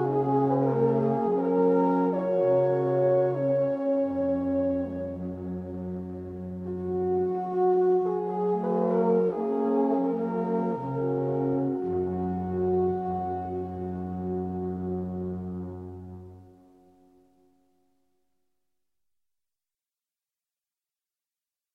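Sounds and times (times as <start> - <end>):
alphorn playing celtic music: 0.0 - 16.4.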